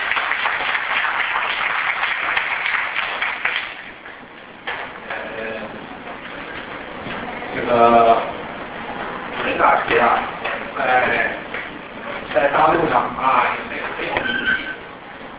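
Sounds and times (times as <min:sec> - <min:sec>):
audience applause welcoming a speaker: 0:00.0 - 0:04.2
low room murmur: 0:00.0 - 0:15.3.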